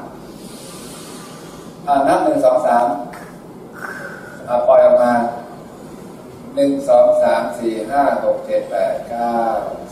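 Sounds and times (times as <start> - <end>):
deep slow breath in: 0.3 - 1.8, 3.8 - 4.5
speech: 1.9 - 3.1, 6.6 - 9.9.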